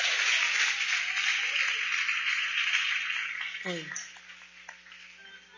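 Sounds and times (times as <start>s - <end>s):
audience clapping: 0.0s - 5.2s
speech: 3.6s - 4.1s.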